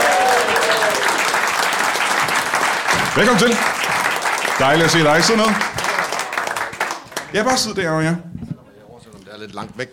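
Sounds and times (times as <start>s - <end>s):
studio audience applause welcoming a guest onto a Danish talk show: 0.0s - 7.7s
speech: 3.2s - 3.9s, 4.6s - 5.7s, 7.3s - 8.4s, 9.4s - 9.9s.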